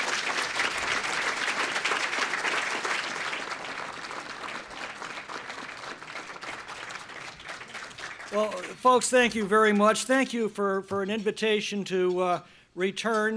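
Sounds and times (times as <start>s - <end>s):
audience at the Young America's Foundation applauding to welcome Congressman Tom McClintock: 0.0s - 9.2s
speech: 8.3s - 13.3s.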